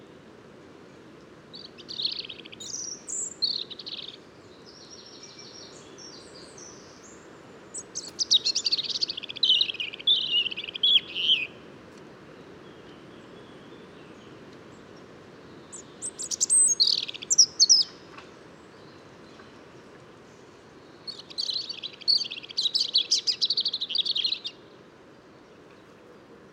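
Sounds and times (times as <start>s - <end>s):
European robin singing: 1.5s - 11.7s, 15.3s - 19.9s, 20.6s - 24.8s.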